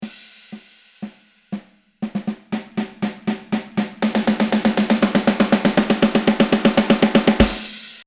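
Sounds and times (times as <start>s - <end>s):
snare roll: 0.0s - 8.0s.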